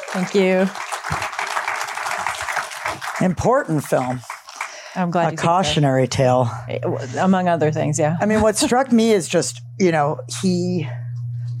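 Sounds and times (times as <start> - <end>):
audience applause: 0.0 - 5.8
speech: 0.2 - 1.2, 3.2 - 4.3, 5.0 - 11.0.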